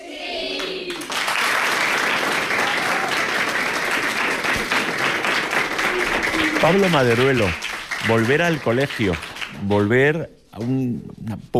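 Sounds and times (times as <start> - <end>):
classroom applause from a group of people: 0.6 - 10.1
murmured voices: 5.7 - 7.2
speech: 6.6 - 11.5.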